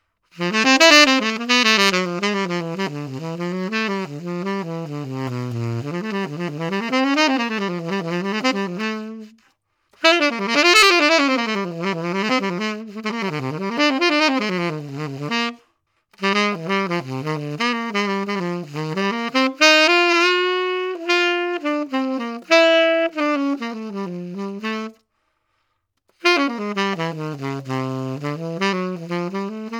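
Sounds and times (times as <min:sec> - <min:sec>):
bebop jazz: 0:00.4 - 0:09.4, 0:10.0 - 0:15.6, 0:16.2 - 0:25.0, 0:26.2 - 0:29.7.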